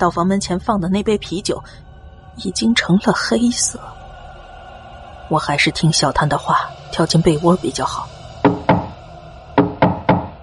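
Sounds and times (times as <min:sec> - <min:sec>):
speech: 0:00.0 - 0:04.0, 0:05.3 - 0:08.2
knocking on a door: 0:08.4 - 0:09.0, 0:09.6 - 0:10.4.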